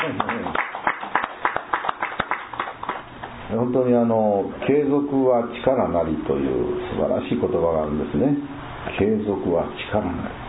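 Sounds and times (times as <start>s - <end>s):
audience clapping: 0.0s - 3.4s
speech: 3.5s - 10.4s.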